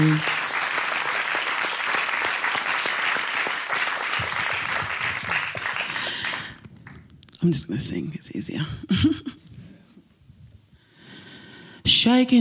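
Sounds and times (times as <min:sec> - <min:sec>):
audience applause: 0:00.0 - 0:07.0
speech: 0:07.4 - 0:09.4, 0:12.0 - 0:12.3.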